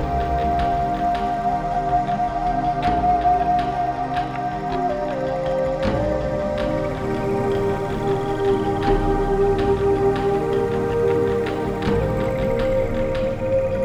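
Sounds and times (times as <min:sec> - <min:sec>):
native flute: 0:00.0 - 0:13.8.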